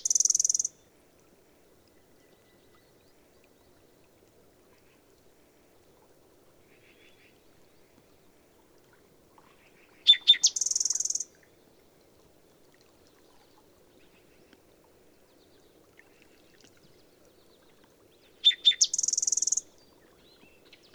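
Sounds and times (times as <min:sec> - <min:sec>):
bird song with dense buzzy high trills and a sustained thin whistle: 0:00.0 - 0:00.7, 0:10.1 - 0:11.3, 0:18.4 - 0:20.9.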